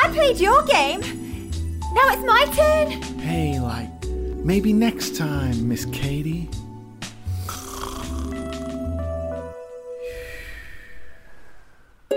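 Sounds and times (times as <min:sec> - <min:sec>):
speech: 0:00.2 - 0:01.2, 0:02.0 - 0:03.9, 0:04.5 - 0:06.6
person snoring during a small snooze: 0:07.2 - 0:08.7, 0:10.0 - 0:12.0.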